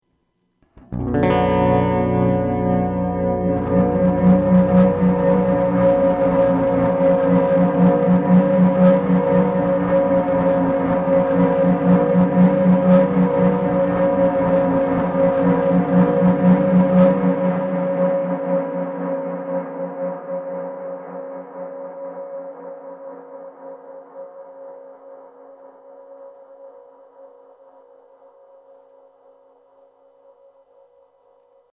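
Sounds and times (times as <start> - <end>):
Keeley Hydra Freeze guitar effect: 0.7 - 21.6.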